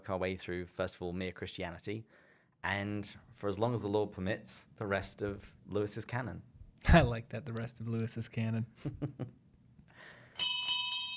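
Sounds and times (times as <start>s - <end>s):
speech: 0.1s - 9.4s
bartender ringing the last-call bell: 10.4s - 11.1s.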